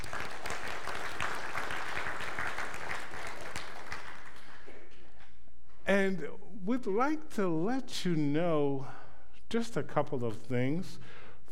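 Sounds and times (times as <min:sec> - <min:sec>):
church congregation applauding to welcome visitors: 0:00.0 - 0:04.9
speech: 0:05.9 - 0:11.2.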